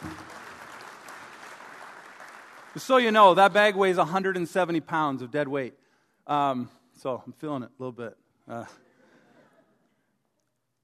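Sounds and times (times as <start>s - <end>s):
audience applause: 0.0s - 3.1s
speech: 2.8s - 8.8s.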